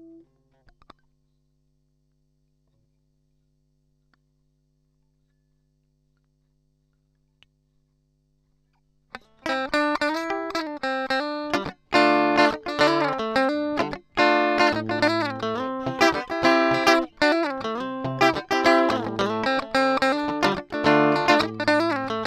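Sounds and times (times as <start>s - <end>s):
amplifier: 9.5s - 22.2s.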